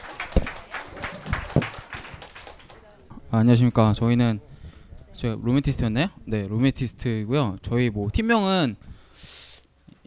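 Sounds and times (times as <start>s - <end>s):
audience applause: 0.0s - 3.0s
speech: 3.3s - 4.5s, 5.2s - 9.4s.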